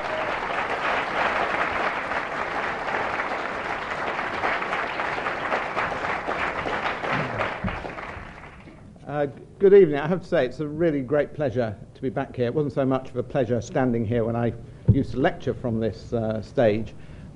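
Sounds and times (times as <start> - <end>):
audience applause: 0.0 - 8.8
speech: 9.2 - 17.1.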